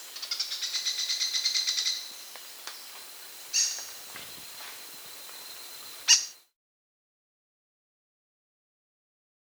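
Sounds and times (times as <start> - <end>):
Buff-browed foliage-gleaner Syndactyla calling in South America: 0.0 - 6.4.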